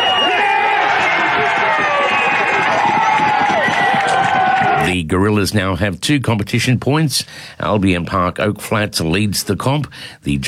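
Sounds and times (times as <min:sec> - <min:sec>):
home crowd cheering after winning try: 0:00.0 - 0:04.9
speech: 0:05.1 - 0:10.4.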